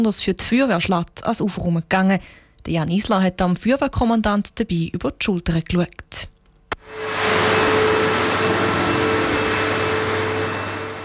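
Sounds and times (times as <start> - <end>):
speech: 0.0 - 7.1
water vacuums running in flooded cellars: 6.9 - 11.0.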